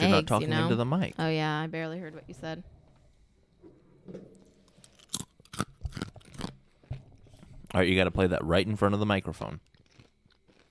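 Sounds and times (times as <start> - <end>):
speech: 0.0 - 2.8, 4.1 - 4.4, 7.7 - 9.7
someone crunching a pretzel: 4.7 - 7.0, 9.4 - 10.6.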